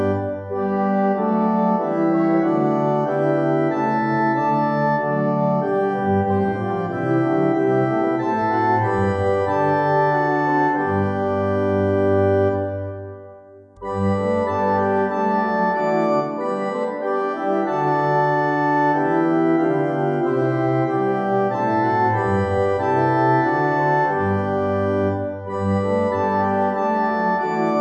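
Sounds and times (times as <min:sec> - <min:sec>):
organ: 0:00.0 - 0:27.7.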